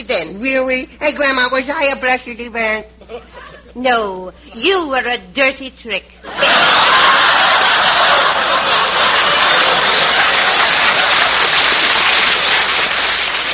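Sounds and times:
speech: 0.1 - 7.4
laughter: 3.0 - 3.8, 6.2 - 12.8
neighbors applauding: 7.0 - 13.5.

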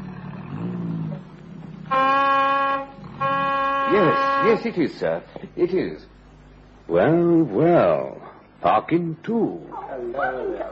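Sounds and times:
car horn honking: 1.9 - 4.8
speech: 3.9 - 6.1, 6.9 - 10.7.

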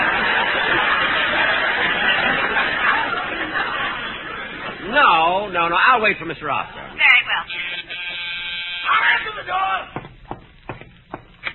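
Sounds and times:
laughter: 0.0 - 5.4, 7.5 - 8.3
speech: 5.6 - 6.8
door buzzer sounding: 7.5 - 9.4.

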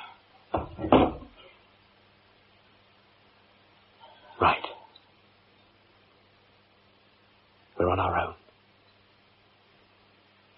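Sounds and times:
wooden door thudding shut: 0.5 - 1.4
speech: 4.4 - 4.7.

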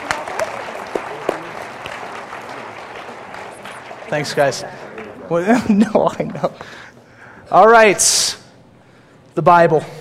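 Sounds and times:
audience applauding: 0.0 - 5.4
speech: 4.1 - 6.8, 7.5 - 8.4, 9.4 - 9.9.

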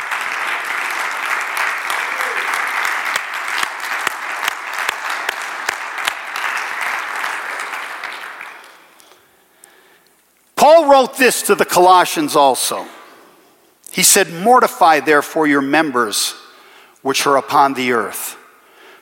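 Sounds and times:
audience clapping: 0.0 - 9.2
speech: 11.0 - 13.0, 14.0 - 16.4, 17.0 - 18.4.

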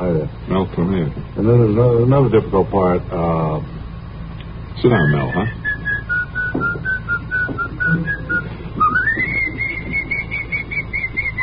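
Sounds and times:
low hum: 0.0 - 11.4
speech: 0.1 - 3.8, 4.8 - 5.6
person whistling a melody: 5.1 - 11.4.

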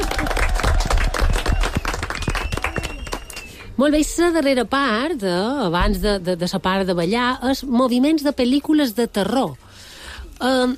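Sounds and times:
group applauding during a playful movement game: 0.0 - 3.8
speech: 3.8 - 9.6, 10.4 - 10.7.

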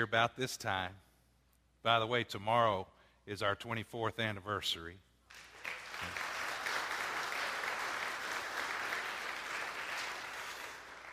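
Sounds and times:
speech: 0.0 - 1.0, 1.8 - 6.3
audience applause: 5.3 - 11.1.

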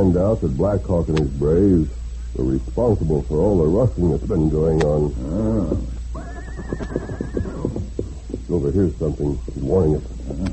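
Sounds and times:
speech: 0.0 - 7.2, 8.5 - 10.2
hooves thudding: 4.8 - 10.5
horse neighing: 5.2 - 8.4.

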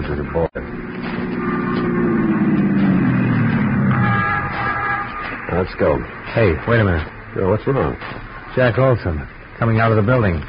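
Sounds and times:
speech: 0.1 - 0.8, 5.7 - 10.4
squad car engine pulling away: 0.6 - 6.3.

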